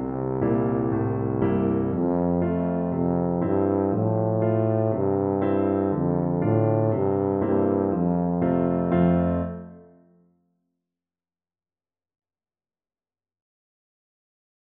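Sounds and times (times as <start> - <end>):
tuba: 0.0 - 10.0.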